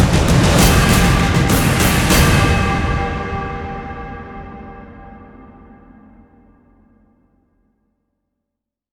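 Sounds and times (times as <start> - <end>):
drums: 0.0 - 5.4.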